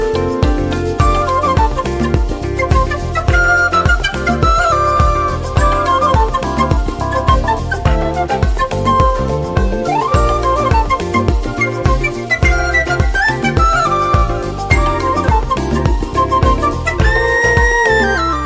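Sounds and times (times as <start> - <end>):
flute: 0.2 - 18.4.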